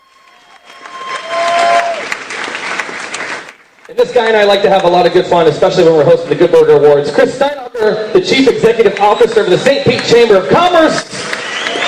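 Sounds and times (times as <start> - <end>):
audience round of applause: 0.0 - 4.9, 8.8 - 11.8
speech: 4.0 - 11.2.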